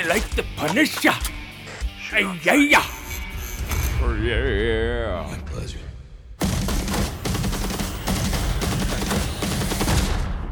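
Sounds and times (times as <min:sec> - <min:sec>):
speech: 0:00.0 - 0:01.4, 0:02.1 - 0:03.0, 0:04.0 - 0:05.8
machine gun fire timed to music in a film scene: 0:06.4 - 0:10.4.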